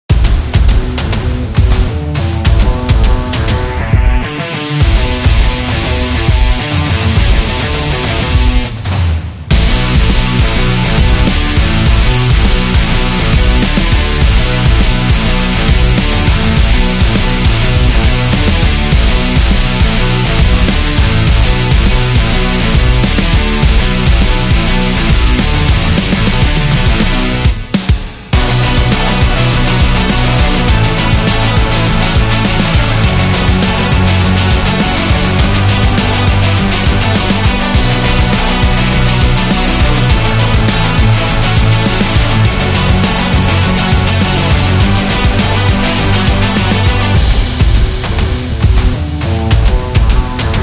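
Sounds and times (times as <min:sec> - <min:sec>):
promo rock music: 0:00.0 - 0:50.6.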